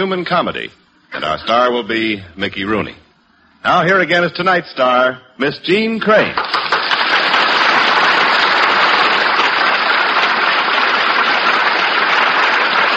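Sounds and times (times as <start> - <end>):
speech: 0.0 - 3.0, 3.6 - 6.8
studio audience applause: 6.1 - 12.9.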